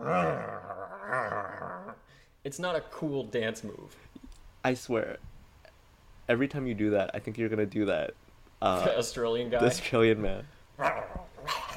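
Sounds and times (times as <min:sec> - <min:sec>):
person imitating a cartoon dog growling: 0:00.0 - 0:02.1, 0:10.8 - 0:11.7
speech: 0:00.1 - 0:00.6, 0:02.1 - 0:05.3, 0:06.3 - 0:11.6.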